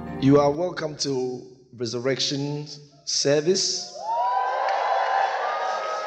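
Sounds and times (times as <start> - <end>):
speech: 0.2 - 3.9
audience shouting and cheering: 4.0 - 6.0.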